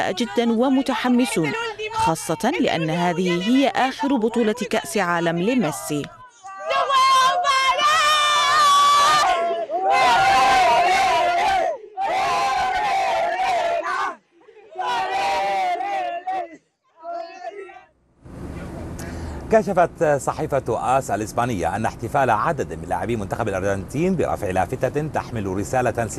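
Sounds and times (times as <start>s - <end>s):
speech: 0.0s - 6.2s, 19.5s - 26.1s
football fans chanting and singing: 0.0s - 17.9s.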